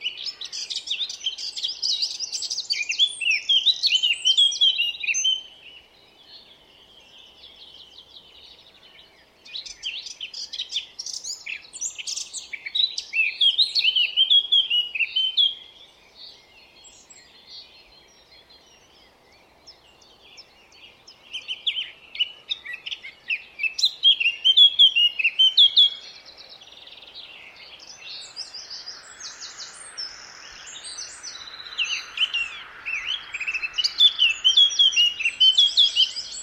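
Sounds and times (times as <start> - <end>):
Eurasian blackcap song: 0.0 - 36.4.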